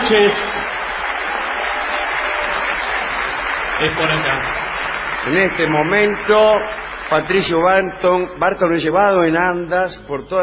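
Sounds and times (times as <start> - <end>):
huge audience ovation greeting an honored guest: 0.0 - 8.4
speech: 0.1 - 0.8, 3.8 - 4.6, 5.2 - 10.4.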